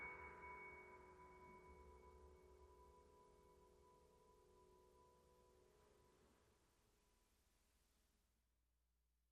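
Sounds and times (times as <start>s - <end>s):
sad bells: 0.0s - 6.2s.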